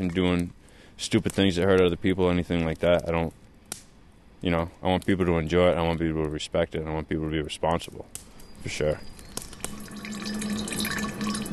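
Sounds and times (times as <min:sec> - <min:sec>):
speech: 0:00.0 - 0:03.4, 0:04.4 - 0:09.1
150-proof clear liquid trickling into an unlabeled jar: 0:09.6 - 0:11.5.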